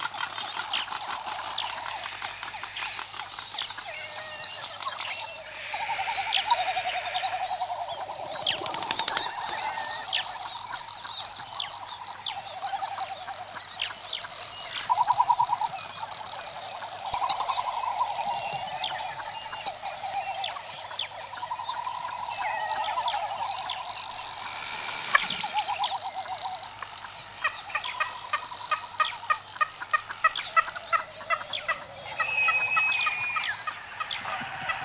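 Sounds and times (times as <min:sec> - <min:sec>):
frigatebird: 0:00.0 - 0:34.8.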